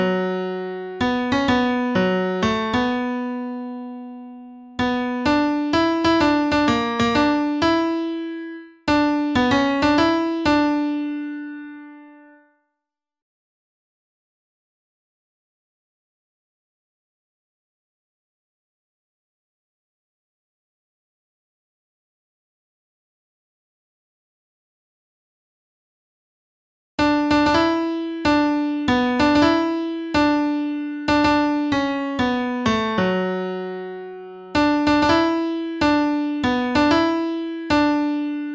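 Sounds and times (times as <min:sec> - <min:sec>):
piano melody: 0:00.0 - 0:12.4, 0:27.0 - 0:38.5.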